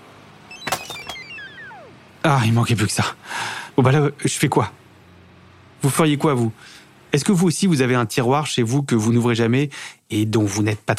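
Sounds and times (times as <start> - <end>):
mobile phone ringtone with incoming call: 0.5 - 2.0
speech: 2.2 - 4.8, 5.8 - 10.9.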